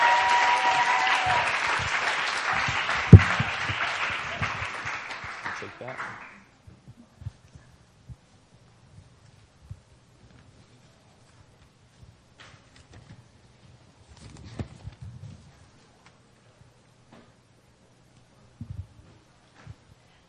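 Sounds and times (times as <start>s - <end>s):
applause welcoming a speaker: 0.0s - 6.5s.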